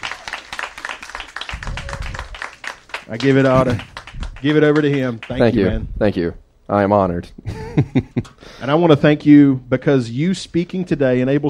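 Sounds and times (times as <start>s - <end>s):
audience applause welcoming a speaker at a Recreate family gathering: 0.0s - 5.6s
speech: 3.1s - 11.4s
laughter: 7.4s - 8.4s.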